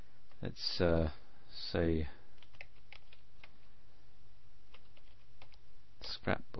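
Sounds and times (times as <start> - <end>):
speech: 0.4 - 2.2, 6.3 - 6.5
rapid typing of a search query on a computer keyboard: 2.4 - 3.6, 4.7 - 5.6.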